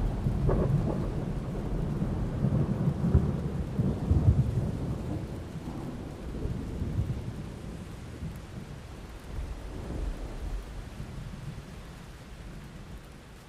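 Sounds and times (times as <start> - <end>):
thunderstorm outdoors: 0.0 - 13.3.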